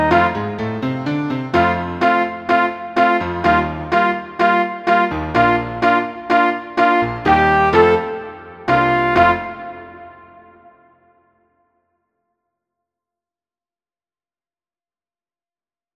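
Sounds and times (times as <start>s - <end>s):
trumpet: 0.0s - 0.6s, 1.6s - 11.2s.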